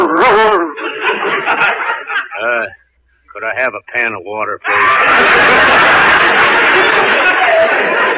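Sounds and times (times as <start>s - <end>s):
man making dog-like noises: 0.0s - 0.8s
laughter: 0.0s - 2.8s, 4.6s - 8.1s
speech: 3.5s - 7.4s.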